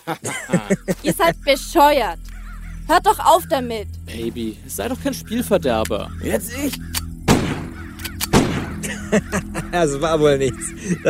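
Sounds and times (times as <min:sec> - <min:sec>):
laughter: 0:00.0 - 0:01.6, 0:08.8 - 0:11.0
speech: 0:00.0 - 0:02.3, 0:02.9 - 0:07.0, 0:09.1 - 0:11.0
pistol shot: 0:07.3 - 0:08.8.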